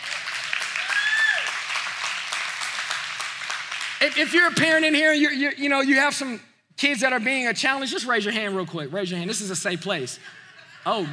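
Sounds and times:
audience applause: 0.0 - 4.5
speech: 4.0 - 11.1
laughter: 10.1 - 11.1.

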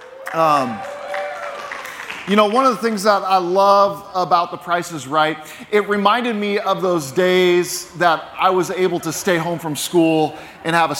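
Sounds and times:
whoop of cheering: 0.0 - 2.2
audience applause: 0.0 - 2.8
speech: 0.3 - 0.9, 2.3 - 10.9.

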